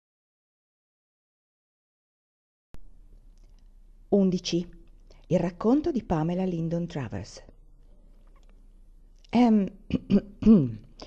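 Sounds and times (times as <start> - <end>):
speech: 4.1 - 7.5, 9.3 - 11.0
light cough clearing the throat: 9.9 - 10.9.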